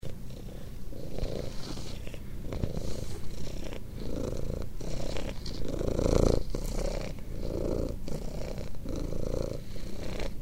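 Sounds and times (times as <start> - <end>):
cat purring: 0.0 - 10.4.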